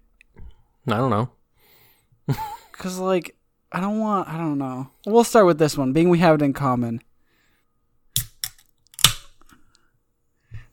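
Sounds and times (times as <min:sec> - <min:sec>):
speech: 0:00.9 - 0:01.4, 0:02.3 - 0:07.1
beer can cracking open with fizzy hiss: 0:08.2 - 0:09.5.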